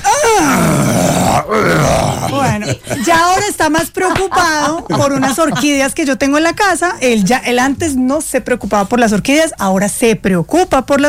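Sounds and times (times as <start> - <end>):
person imitating a groan when standing up: 0.0 - 3.0
laughter: 1.9 - 6.0
speech: 2.6 - 11.0.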